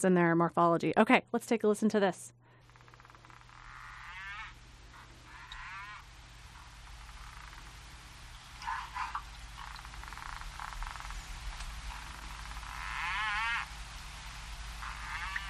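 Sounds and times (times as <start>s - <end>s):
speech: 0.0s - 2.4s
underwater rumble and hiss: 2.3s - 15.4s
slowed-down harbor porpoise echolocation clicks underwater: 2.6s - 13.7s, 14.7s - 15.4s.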